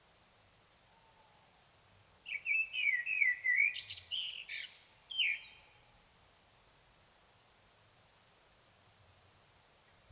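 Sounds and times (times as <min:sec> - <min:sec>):
Common blackbird singing: 0:02.3 - 0:05.6.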